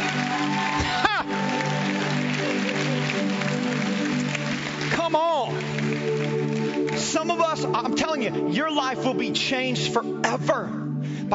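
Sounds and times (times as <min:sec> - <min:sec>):
audience cheering and applauding: 0:00.0 - 0:07.9
speech: 0:08.1 - 0:11.3.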